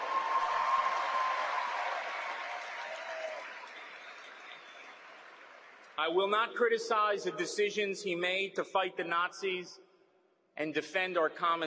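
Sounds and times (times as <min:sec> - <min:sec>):
audience applause: 0:00.0 - 0:06.0
speech: 0:06.0 - 0:09.8, 0:10.6 - 0:11.6.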